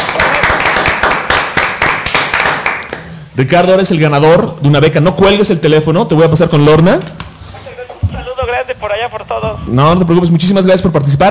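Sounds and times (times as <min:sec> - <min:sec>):
applause: 0:00.0 - 0:03.1
speech: 0:03.4 - 0:07.3, 0:09.0 - 0:11.3.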